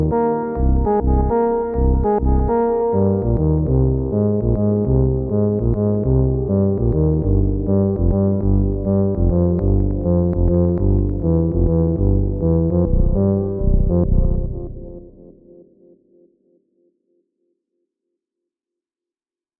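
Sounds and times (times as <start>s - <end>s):
organ bass: 0.0s - 15.3s.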